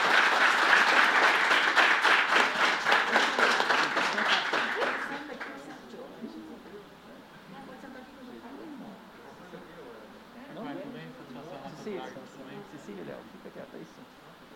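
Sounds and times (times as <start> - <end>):
audience applause: 0.0 - 5.7.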